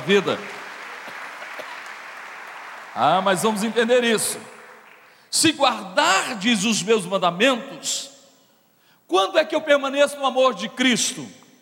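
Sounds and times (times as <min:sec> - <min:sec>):
speech: 0:00.0 - 0:00.6, 0:03.0 - 0:04.6, 0:05.3 - 0:08.1, 0:09.1 - 0:11.4
audience clapping: 0:00.0 - 0:05.3.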